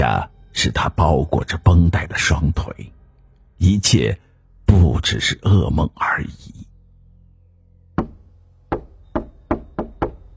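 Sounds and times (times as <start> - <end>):
speech: 0.6 - 3.0, 3.6 - 6.6
knocking on a door: 8.0 - 10.3.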